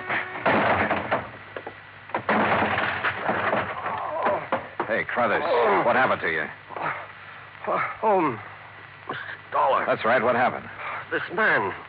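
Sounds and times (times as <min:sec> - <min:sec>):
locked door being forced open: 0:00.0 - 0:01.4, 0:02.1 - 0:04.9
speech: 0:05.2 - 0:06.9, 0:07.7 - 0:08.5, 0:09.1 - 0:11.8.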